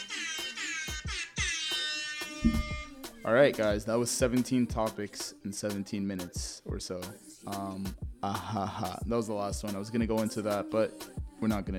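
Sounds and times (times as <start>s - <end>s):
air horn sound effect: 0.2s - 3.0s
speech: 3.2s - 11.7s.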